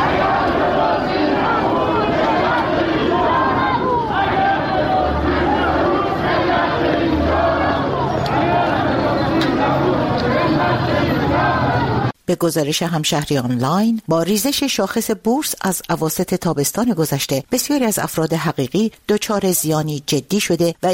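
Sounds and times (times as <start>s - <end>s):
protesting crowd shouting outside stock exchange: 0.0s - 12.2s
speech: 12.3s - 20.9s.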